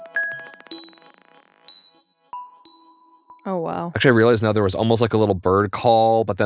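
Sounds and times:
glass marble bouncing in music: 0:00.0 - 0:02.0
ringing high pings and sustained tones: 0:00.0 - 0:03.9
speech: 0:03.4 - 0:06.4.

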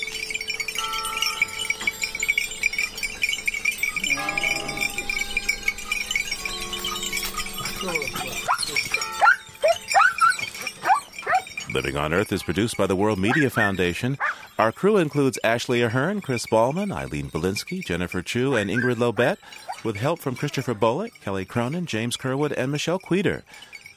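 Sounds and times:
bells from the village church: 0:00.0 - 0:14.8
shepherd's flock on marbled hillsides: 0:03.9 - 0:15.6, 0:18.4 - 0:20.8
speech: 0:11.8 - 0:23.7.

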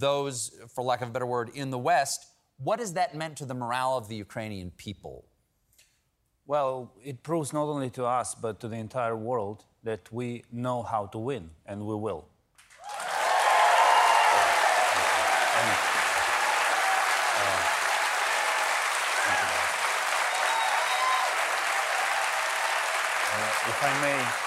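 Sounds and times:
speech: 0:00.0 - 0:05.3, 0:06.5 - 0:12.3
audience applause: 0:12.6 - 0:24.4.

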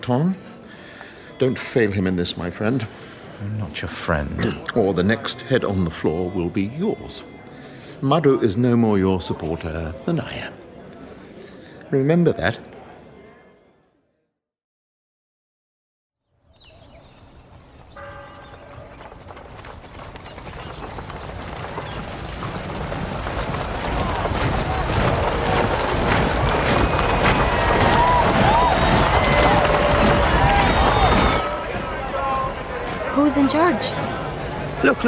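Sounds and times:
speech: 0:00.0 - 0:00.5, 0:01.4 - 0:07.4, 0:08.0 - 0:10.6, 0:11.9 - 0:12.7
voices murmuring: 0:00.0 - 0:13.2, 0:18.6 - 0:35.0
horse hooves clip-clopping: 0:17.0 - 0:35.0.

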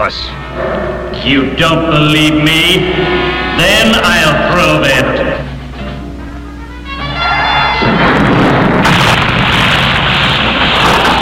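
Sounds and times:
speech: 0:00.0 - 0:05.5
explosion sound effect in a film scene: 0:00.5 - 0:04.6, 0:07.8 - 0:11.2.

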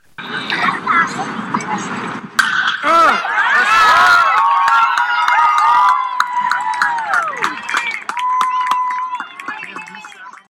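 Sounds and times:
baseball bat hitting a line drive: 0:02.4 - 0:02.9
crowd cheering and shouting: 0:02.4 - 0:10.4.

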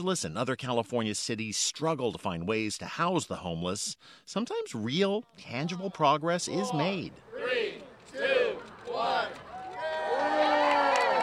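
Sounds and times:
speech: 0:00.0 - 0:08.3
crowd cheering at opening of emergency homeless shelter in Watts, Los Angeles: 0:06.8 - 0:11.2.

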